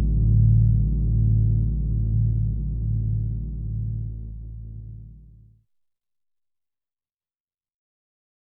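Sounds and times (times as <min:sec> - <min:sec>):
Dreadbox Polyend Medusa synthesizer unison chord: 0:00.0 - 0:05.3.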